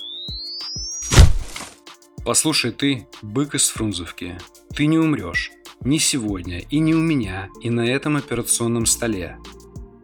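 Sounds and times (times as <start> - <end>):
defibrillator shock discharge: 1.0 - 1.7
speech: 2.2 - 9.6.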